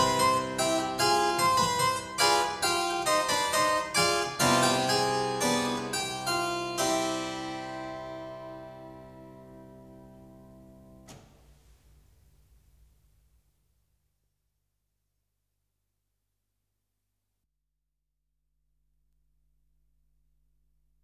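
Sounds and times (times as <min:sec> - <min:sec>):
fugue in C minor on clavier: 0:00.0 - 0:11.1.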